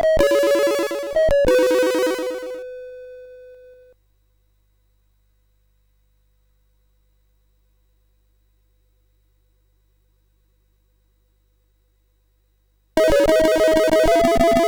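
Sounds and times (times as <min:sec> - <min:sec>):
SID chiptune music on a CSG8580R5 chip: 0:00.0 - 0:03.7, 0:13.0 - 0:14.6.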